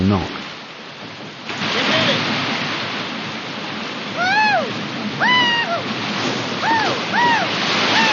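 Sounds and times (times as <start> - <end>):
speech: 0.1 - 0.4
rushing river rapids: 0.1 - 8.1
paddlers shouting calls: 4.2 - 5.9, 6.6 - 8.1.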